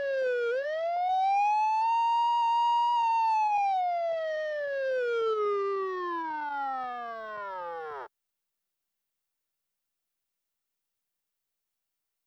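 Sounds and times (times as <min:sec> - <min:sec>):
steady police siren on vehicles: 0:00.0 - 0:08.1.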